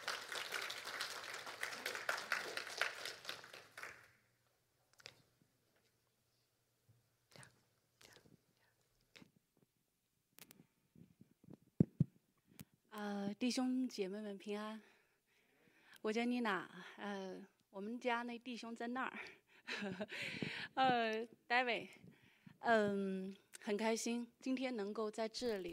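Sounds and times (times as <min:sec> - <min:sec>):
audience applause: 0:00.0 - 0:04.1
faint taps and bumps: 0:11.0 - 0:12.2
speech: 0:13.4 - 0:14.9, 0:16.0 - 0:25.7.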